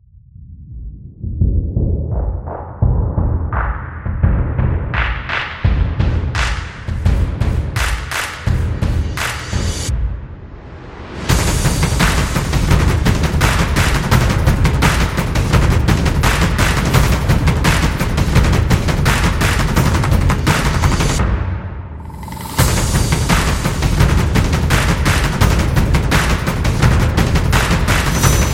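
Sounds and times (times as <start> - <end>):
drums: 1.2 - 28.5.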